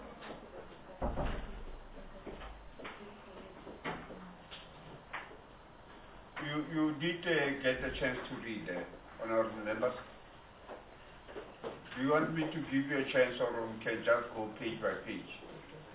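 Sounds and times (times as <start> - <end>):
door being closed: 1.0 - 1.9
speech: 7.0 - 10.1, 12.0 - 15.4.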